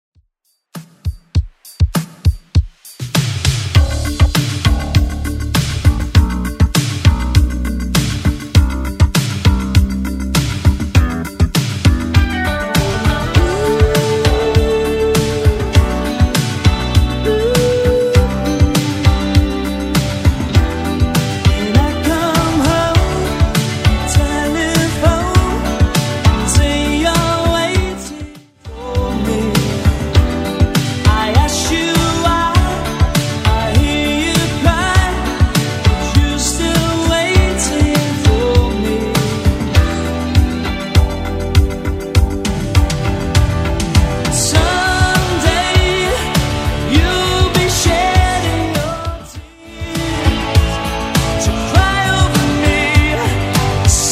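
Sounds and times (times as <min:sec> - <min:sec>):
80s Redrum drum machine beat at 100 bpm: 0:00.7 - 0:54.1.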